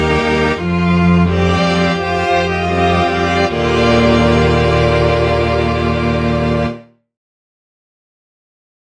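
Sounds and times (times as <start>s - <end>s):
string ensemble: 0.0s - 7.0s.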